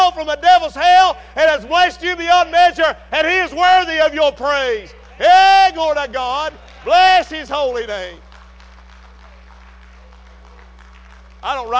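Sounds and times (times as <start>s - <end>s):
low electrical hum: 0.0s - 11.7s
speech: 0.2s - 8.2s, 11.4s - 11.7s
congregation clapping during a church worship service: 4.8s - 11.7s.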